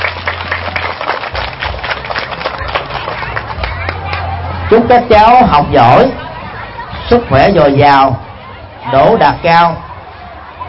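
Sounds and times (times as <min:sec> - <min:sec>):
audience applause: 0:00.0 - 0:04.4
speech: 0:04.7 - 0:06.2, 0:07.1 - 0:08.2, 0:08.8 - 0:09.9.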